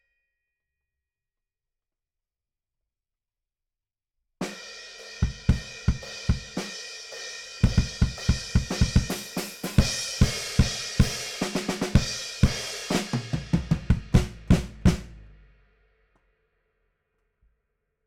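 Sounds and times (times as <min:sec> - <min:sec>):
bass drum: 0:07.6 - 0:15.4.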